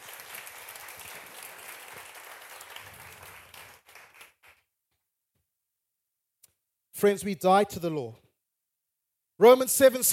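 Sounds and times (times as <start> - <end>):
audience applause: 0.0 - 4.6
speech: 7.0 - 8.2, 9.4 - 10.1.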